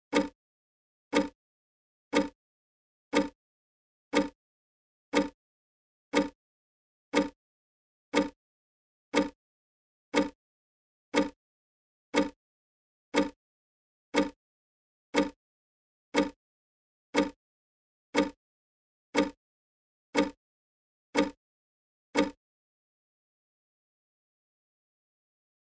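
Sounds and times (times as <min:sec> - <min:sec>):
clock: 0:00.1 - 0:00.4, 0:01.1 - 0:01.4, 0:02.1 - 0:02.4, 0:03.1 - 0:03.4, 0:04.1 - 0:04.4, 0:05.1 - 0:05.4, 0:06.1 - 0:06.4, 0:07.1 - 0:07.4, 0:08.1 - 0:08.4, 0:09.1 - 0:09.4, 0:10.1 - 0:10.4, 0:11.1 - 0:11.4, 0:12.1 - 0:12.4, 0:13.1 - 0:13.4, 0:14.1 - 0:14.4, 0:15.1 - 0:15.4, 0:16.1 - 0:16.4, 0:17.1 - 0:17.4, 0:18.1 - 0:18.4, 0:19.1 - 0:19.4, 0:20.1 - 0:20.4, 0:21.2 - 0:21.4, 0:22.1 - 0:22.4.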